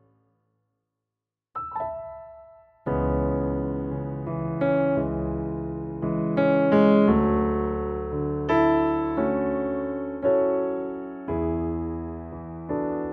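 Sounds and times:
piano: 1.6 - 13.1.

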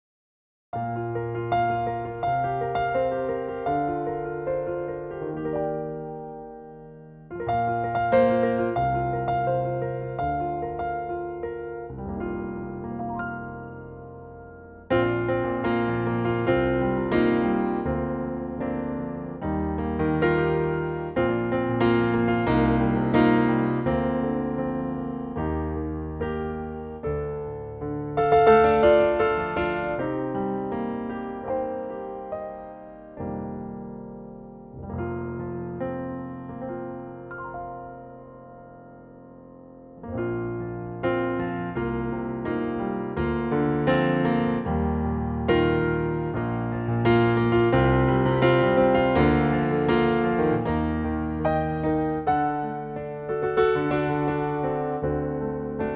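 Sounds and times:
piano in B flat: 0.7 - 55.9.

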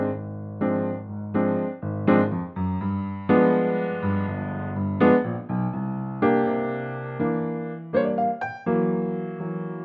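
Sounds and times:
piano in B-flat: 0.0 - 9.8.

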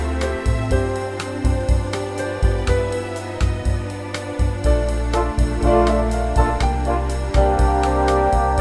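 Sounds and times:
orchestral bossa nova arrangement in F: 0.0 - 8.5.

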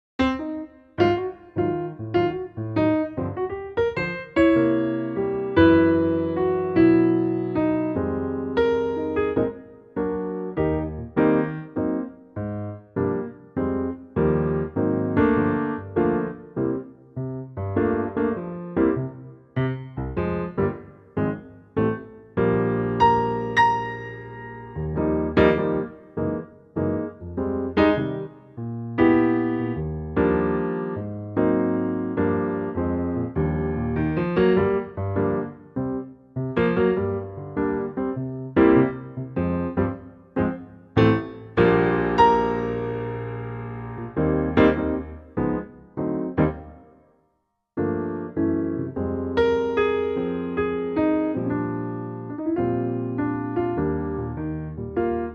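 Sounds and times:
electric piano: 0.2 - 47.1, 47.8 - 55.3.

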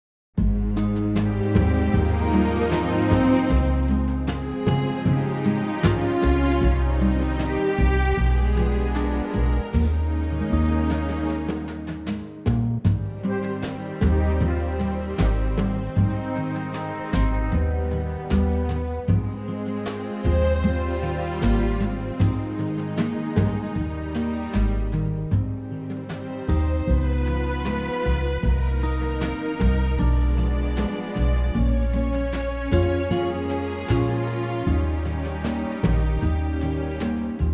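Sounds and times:
orchestral sound in A flat: 0.4 - 37.5.

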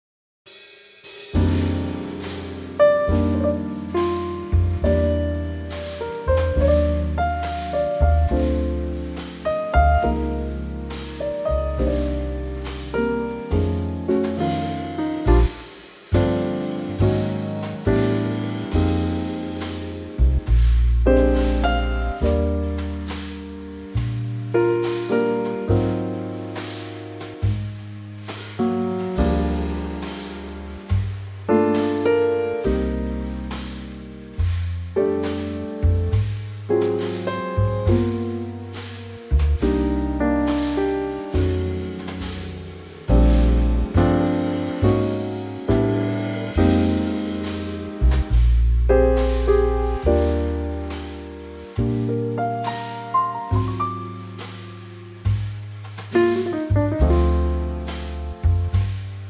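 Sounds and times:
instrumental trio in B-flat: 0.5 - 59.2.

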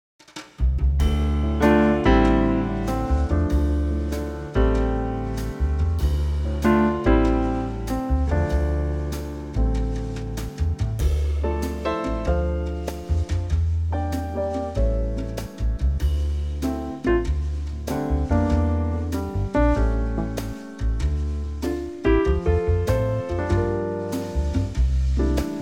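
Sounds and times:
swing trio in D minor: 0.4 - 25.5.

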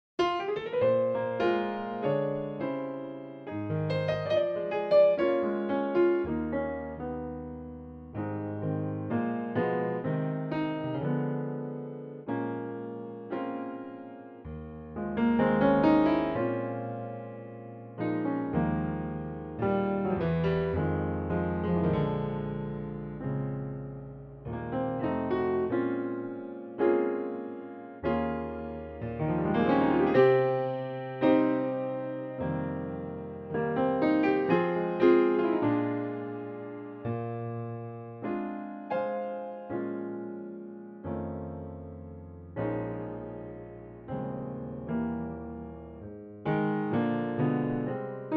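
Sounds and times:
piano intro: 0.2 - 48.3.

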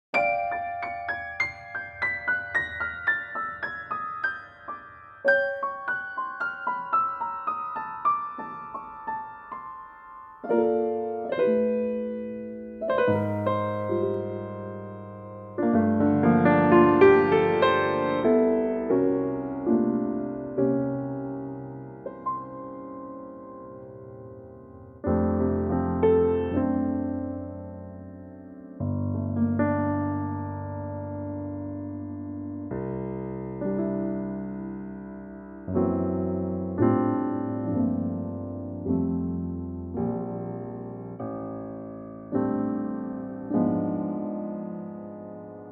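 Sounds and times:
piano note F: 0.1 - 45.7.

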